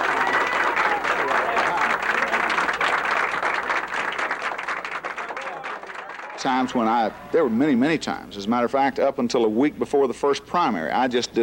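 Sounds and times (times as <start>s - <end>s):
large crowd applauding and cheering: 0.0s - 7.6s
speech: 6.4s - 11.4s.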